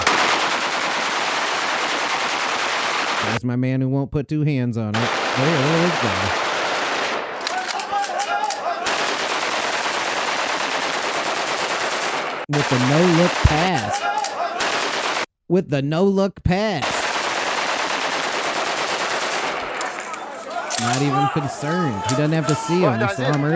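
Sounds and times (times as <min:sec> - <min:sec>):
gunshots shooting down birds: 0:00.0 - 0:03.4, 0:05.0 - 0:15.3, 0:16.8 - 0:21.2
speech: 0:03.2 - 0:06.5, 0:12.5 - 0:14.2, 0:15.5 - 0:17.0, 0:20.8 - 0:23.5
laughter: 0:05.4 - 0:06.3, 0:07.5 - 0:09.0, 0:12.5 - 0:14.8, 0:19.9 - 0:23.5.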